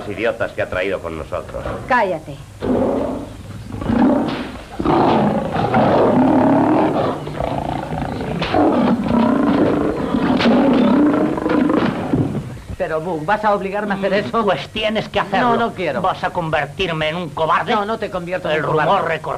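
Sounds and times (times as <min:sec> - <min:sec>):
speech: 0:00.1 - 0:02.8, 0:12.9 - 0:19.3
lion roaring and growling: 0:02.6 - 0:12.8.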